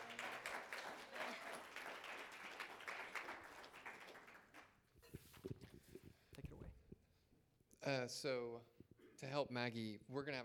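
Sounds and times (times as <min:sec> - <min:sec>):
audience applause: 0:00.0 - 0:04.8
speech: 0:07.8 - 0:10.4.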